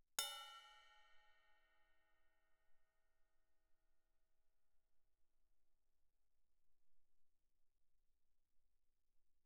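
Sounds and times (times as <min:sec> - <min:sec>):
stick striking crash cymbal bell medium loud: 0:00.2 - 0:01.0.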